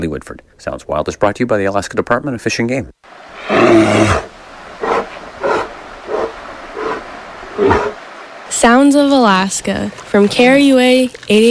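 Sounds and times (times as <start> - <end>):
speech: 0.0 - 4.3, 8.6 - 11.5
grizzly bear roaring in Alaska: 3.3 - 8.0.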